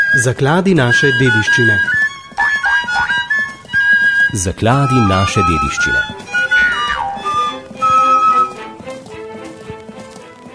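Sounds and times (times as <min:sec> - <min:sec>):
horse hooves clip-clopping: 0:00.0 - 0:10.5
speech: 0:00.2 - 0:02.0, 0:04.3 - 0:06.2
sustained tonal background: 0:00.9 - 0:08.8.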